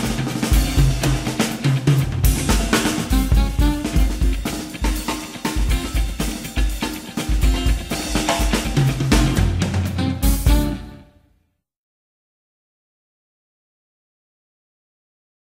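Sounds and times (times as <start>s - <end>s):
instrumental music in plagal mode: 0.0s - 11.3s.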